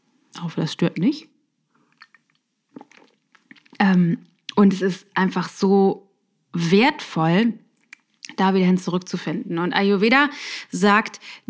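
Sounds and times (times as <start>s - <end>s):
speech: 0.4s - 1.3s, 4.0s - 7.6s, 8.2s - 11.4s
sip and swallow of a drink: 1.8s - 4.6s.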